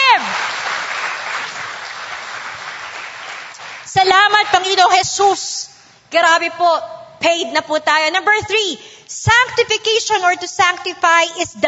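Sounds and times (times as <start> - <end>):
audience applause as clap offering: 0.0 - 3.9
speech: 3.9 - 11.6.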